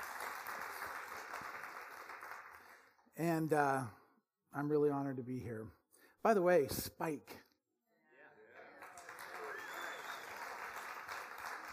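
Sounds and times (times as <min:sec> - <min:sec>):
audience applauding: 0:00.0 - 0:03.0, 0:08.6 - 0:11.7
speech: 0:03.2 - 0:07.4.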